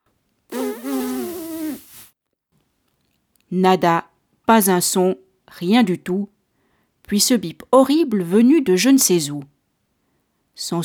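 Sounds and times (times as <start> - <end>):
person blowing hard into an instrument mouthpiece: 0.5 - 2.1
speech: 3.5 - 6.4, 7.1 - 9.6, 10.6 - 10.8.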